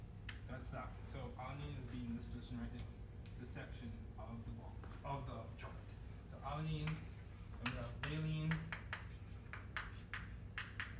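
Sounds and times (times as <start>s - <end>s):
speech: 0.5s - 8.8s
writing strokes on a board during a chemistry lecture: 7.6s - 10.9s.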